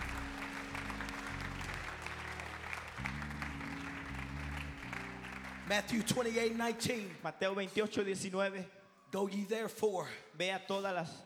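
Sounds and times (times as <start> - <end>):
people clapping hands: 0.0 - 7.1
speech: 5.7 - 11.2.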